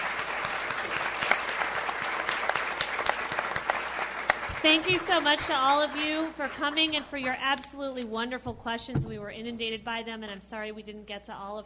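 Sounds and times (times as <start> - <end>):
audience clapping: 0.0 - 7.4
speech: 4.6 - 11.6.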